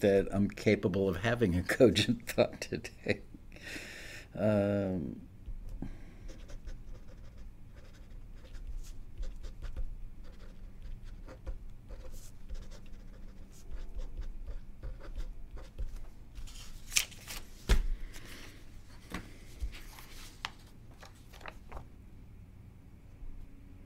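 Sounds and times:
speech: 0.0s - 6.0s
pen scratching on paper: 6.3s - 16.0s.

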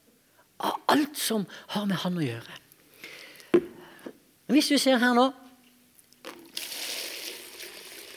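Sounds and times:
speech: 0.9s - 2.6s, 4.5s - 5.4s
water poured into a bucket: 6.3s - 8.1s.

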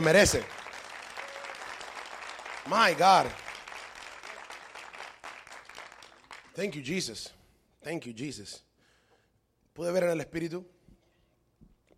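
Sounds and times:
speech: 0.0s - 0.6s, 2.7s - 3.4s, 6.6s - 8.7s, 9.8s - 10.7s
applause: 0.0s - 7.3s.

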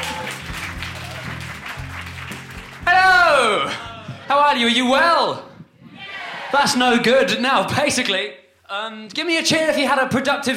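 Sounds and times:
audience applause for comedian: 0.0s - 4.1s
speech: 4.3s - 5.5s, 6.5s - 10.5s.

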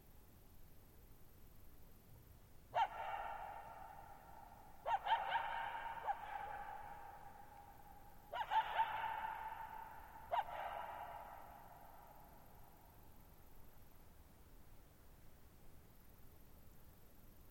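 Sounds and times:
coyote yipping and howling: 2.8s - 12.4s.

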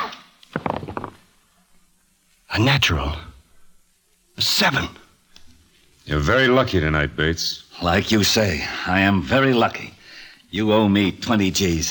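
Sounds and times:
dice thrown clattering onto a table: 0.5s - 1.3s
speech: 2.6s - 3.3s, 4.4s - 5.0s, 6.1s - 11.8s.

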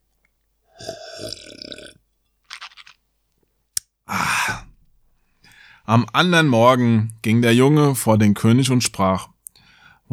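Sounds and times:
person taking a sip of water: 0.7s - 3.0s
soft swallowing: 0.7s - 3.0s
speech: 5.9s - 9.3s.

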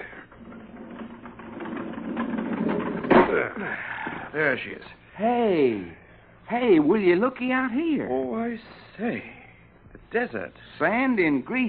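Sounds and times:
railroad freight car door sliding open: 0.0s - 3.5s
speech: 3.4s - 9.4s, 10.1s - 11.6s.

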